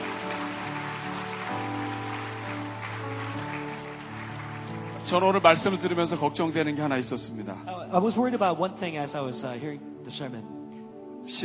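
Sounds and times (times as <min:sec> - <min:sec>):
audience applauding: 0:00.0 - 0:05.9
speech: 0:05.1 - 0:10.6, 0:11.2 - 0:11.4.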